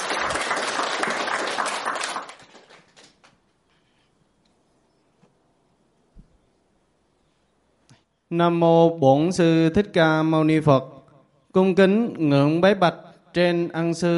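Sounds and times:
audience applause: 0:00.0 - 0:03.3
speech: 0:08.3 - 0:11.0, 0:11.6 - 0:14.1.

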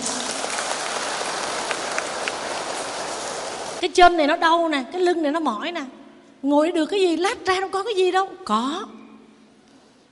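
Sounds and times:
crowd clapping: 0:00.0 - 0:03.8
speech: 0:03.8 - 0:09.0.

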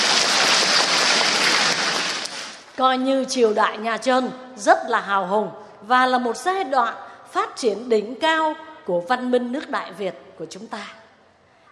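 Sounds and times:
audience applause at a Vietnamese history quiz: 0:00.0 - 0:02.7
speech: 0:02.8 - 0:11.0.

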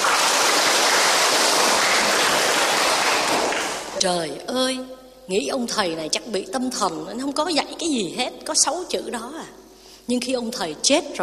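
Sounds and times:
applause: 0:00.0 - 0:04.0
speech: 0:04.0 - 0:11.2.

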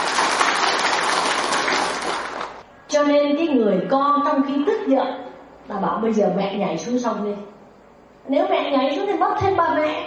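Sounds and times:
audience applause during a Vietnamese Buddhist dharma talk: 0:00.0 - 0:02.6
speech: 0:03.6 - 0:07.5, 0:08.3 - 0:10.0.

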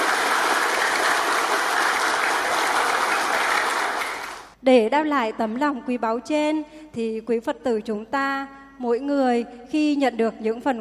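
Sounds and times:
audience applause: 0:00.0 - 0:04.6
speech: 0:04.7 - 0:10.8.

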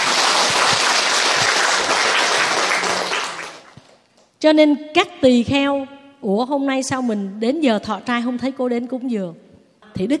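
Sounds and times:
audience applause: 0:00.0 - 0:04.0
speech: 0:04.4 - 0:09.4, 0:10.0 - 0:10.1.

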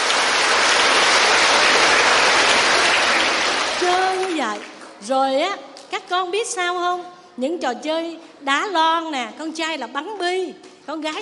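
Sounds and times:
hand clapping from a group: 0:00.0 - 0:05.0
speech: 0:05.0 - 0:11.2.

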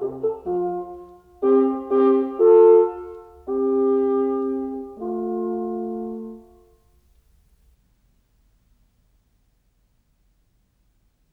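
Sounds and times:
two horns playing an allegro duo: 0:00.0 - 0:06.7.

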